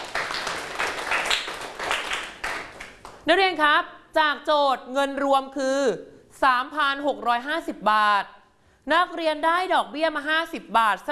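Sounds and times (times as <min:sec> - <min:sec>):
classroom applause: 0:00.0 - 0:03.2
speech: 0:03.3 - 0:11.1.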